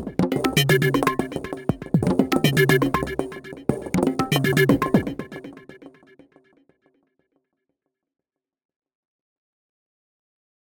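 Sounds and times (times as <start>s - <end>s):
arpeggios: 0.0s - 5.8s.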